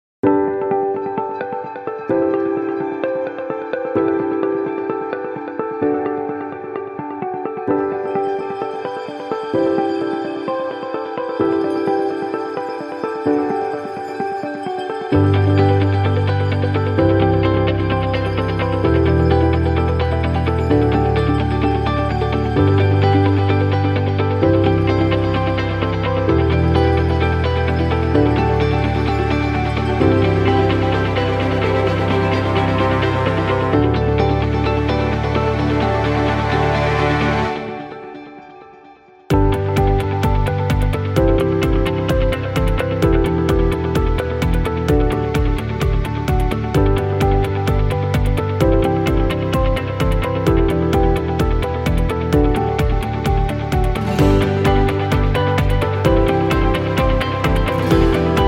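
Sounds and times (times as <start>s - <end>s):
motivational inspiring corporate music: 0.2s - 58.4s.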